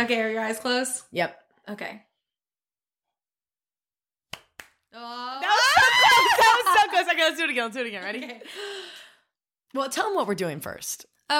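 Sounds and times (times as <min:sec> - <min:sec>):
speech: 0:00.0 - 0:02.1, 0:04.9 - 0:05.6, 0:06.9 - 0:09.0, 0:09.7 - 0:11.3
two people clapping hands: 0:04.3 - 0:04.9
laughter: 0:05.4 - 0:07.3.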